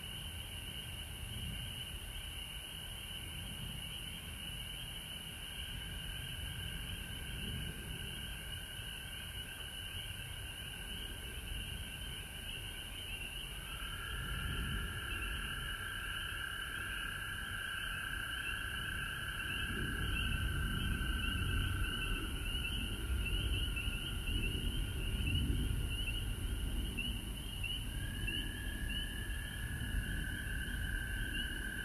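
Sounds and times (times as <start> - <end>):
frog chorus trilling: 0.0 - 31.8.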